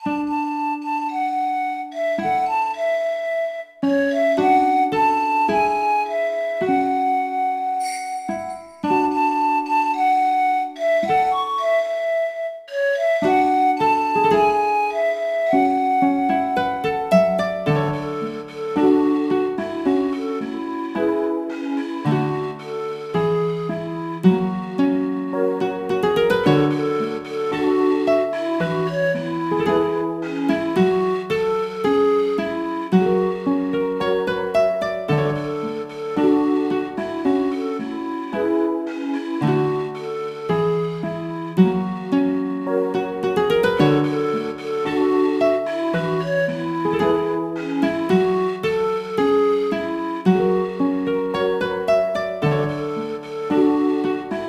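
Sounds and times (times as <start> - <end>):
flute: 0.0 - 54.4.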